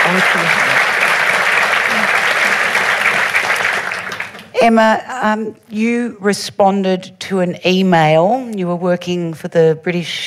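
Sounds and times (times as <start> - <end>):
audience applause welcoming a speaker in Melbourne: 0.0 - 4.6
speech: 0.2 - 0.6, 4.6 - 10.2.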